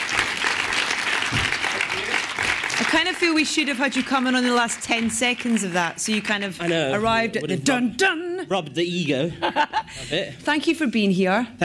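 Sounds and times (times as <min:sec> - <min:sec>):
audience applause welcoming a composer: 0:00.0 - 0:07.0
speech: 0:03.0 - 0:11.6.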